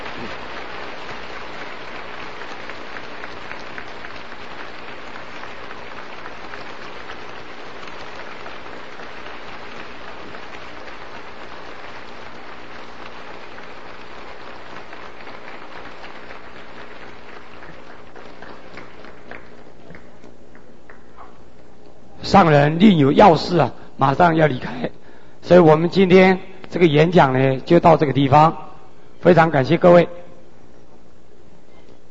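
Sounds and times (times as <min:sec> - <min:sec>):
warm audience applause: 0:00.0 - 0:21.2
speech: 0:22.3 - 0:28.6, 0:29.2 - 0:30.3.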